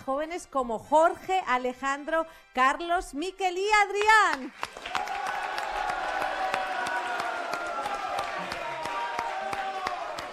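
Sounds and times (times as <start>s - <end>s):
speech: 0.0s - 4.9s
students clapping: 3.9s - 10.3s
students cheering: 4.7s - 10.3s.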